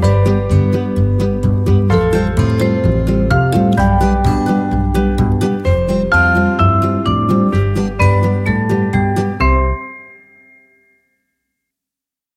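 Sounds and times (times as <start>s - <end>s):
acoustic band playing: 0.0s - 9.9s.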